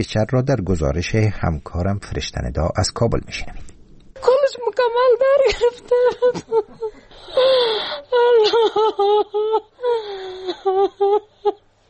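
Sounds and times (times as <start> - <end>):
speech: 0.0 - 11.6
grieving mother crying in Kabul: 4.3 - 11.7.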